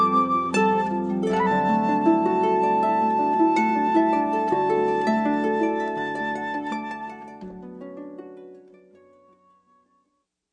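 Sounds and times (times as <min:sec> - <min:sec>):
flute: 0:00.0 - 0:07.7
harp: 0:00.0 - 0:10.1.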